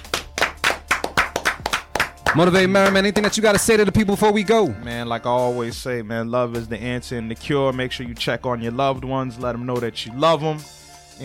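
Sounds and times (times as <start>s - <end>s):
audience clapping: 0.0s - 3.7s
speech: 2.3s - 11.2s.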